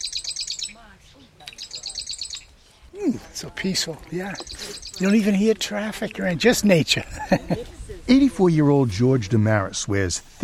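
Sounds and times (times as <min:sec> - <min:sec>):
marsh wren chip calls: 0:00.0 - 0:02.8, 0:03.6 - 0:06.3
speech: 0:02.9 - 0:10.4
laughter: 0:06.9 - 0:08.0.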